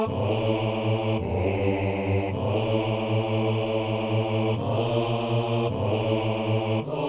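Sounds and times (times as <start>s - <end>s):
bass voice singing a mass doxology: 0.1s - 6.9s.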